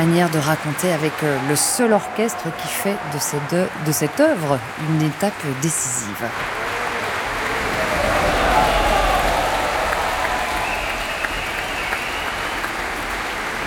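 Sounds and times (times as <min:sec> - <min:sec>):
speech: 0:00.0 - 0:06.8
enthusiastic audience applauding an orchestra at an opera house: 0:00.0 - 0:13.6.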